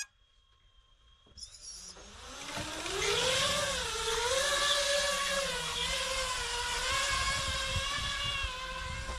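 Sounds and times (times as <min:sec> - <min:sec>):
brief tone: 0:00.0 - 0:02.0
drone motors whirring during launch: 0:00.8 - 0:09.1.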